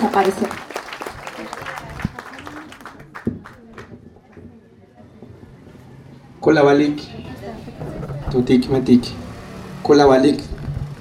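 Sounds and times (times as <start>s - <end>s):
speech: 0.0s - 0.7s, 6.4s - 7.2s, 8.3s - 9.2s, 9.9s - 10.5s
audience applause: 0.0s - 4.0s.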